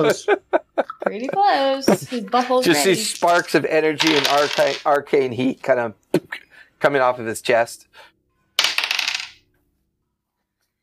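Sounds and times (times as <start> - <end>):
laughter: 0.0 - 3.0
speech: 0.0 - 8.1
dice rolling across a hard surface: 3.0 - 5.0, 8.6 - 9.4.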